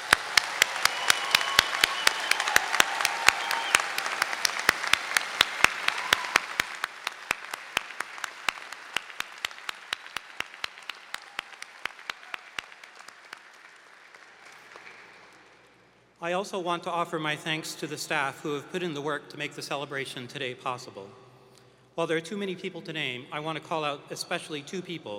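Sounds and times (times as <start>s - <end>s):
audience applause for graduates: 0.0s - 15.8s
speech: 16.2s - 21.2s, 22.0s - 25.1s.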